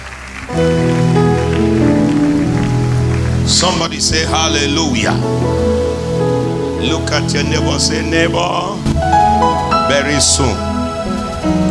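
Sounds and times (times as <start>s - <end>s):
crowd clapping: 0.0s - 5.2s
loud sustained musical chords: 0.0s - 11.6s
speech: 3.6s - 5.8s, 6.8s - 9.0s, 9.9s - 10.7s, 11.4s - 11.6s.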